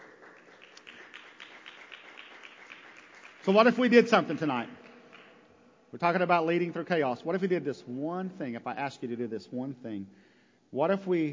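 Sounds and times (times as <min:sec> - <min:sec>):
audience clapping: 0:00.0 - 0:06.2
speech: 0:03.4 - 0:04.8, 0:05.9 - 0:11.3.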